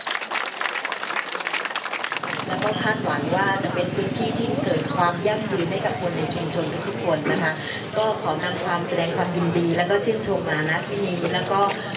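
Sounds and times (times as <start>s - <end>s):
audience applause: 0.0s - 2.9s
speech: 2.5s - 11.9s.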